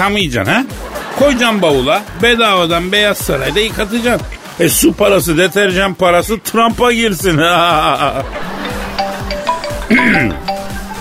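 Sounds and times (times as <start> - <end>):
speech: 0.0 - 8.6, 10.1 - 10.5
laughter: 0.6 - 5.9, 7.3 - 10.9
studio telephone ringing: 8.6 - 10.9.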